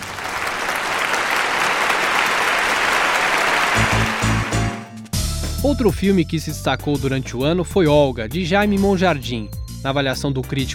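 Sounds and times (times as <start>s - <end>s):
festival audience applause: 0.0s - 4.9s
speech: 5.6s - 10.7s.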